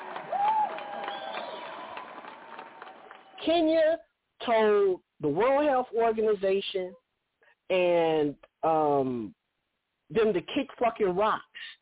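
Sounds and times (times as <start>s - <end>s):
hand claps: 0.0s - 3.4s
speech: 3.4s - 7.0s, 7.7s - 9.4s, 10.1s - 11.5s.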